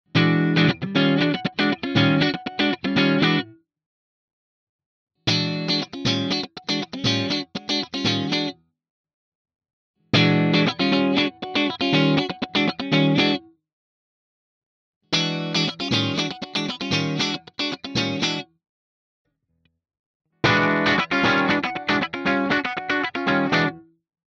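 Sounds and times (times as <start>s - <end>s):
Jackson AS Virtuoso SHP clean electric guitar funk playing: 0.1s - 3.5s, 5.3s - 8.6s, 10.2s - 13.4s, 15.1s - 18.4s, 20.4s - 23.9s.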